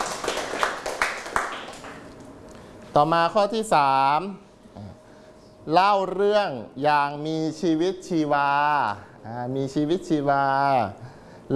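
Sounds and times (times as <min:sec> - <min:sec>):
classmates in a classroom clapping in unison in a cheer: 0:00.0 - 0:02.2
speech: 0:02.9 - 0:04.9, 0:05.6 - 0:11.5.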